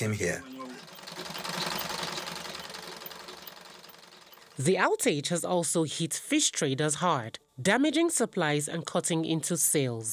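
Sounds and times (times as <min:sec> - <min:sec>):
speech: 0:00.0 - 0:01.4, 0:04.6 - 0:10.1
pedal-operated sewing machine stitching uniforms: 0:00.4 - 0:04.7.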